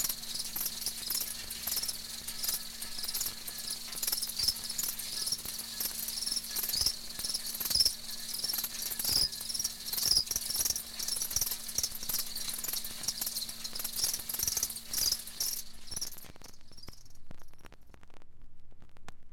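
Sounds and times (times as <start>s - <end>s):
crickets chirping: 0.0s - 17.1s.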